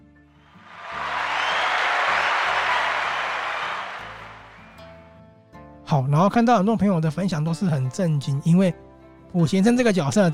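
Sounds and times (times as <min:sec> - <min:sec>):
crowd applause: 0:00.5 - 0:04.9
soft low music: 0:04.1 - 0:10.3
speech: 0:06.0 - 0:10.3.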